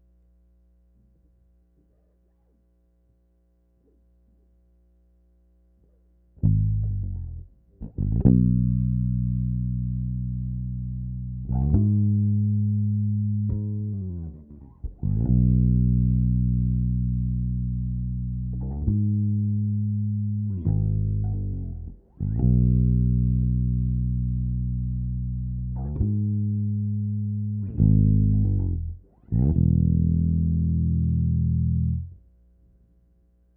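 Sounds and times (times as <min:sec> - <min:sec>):
bass takes: 0:00.0 - 0:33.5.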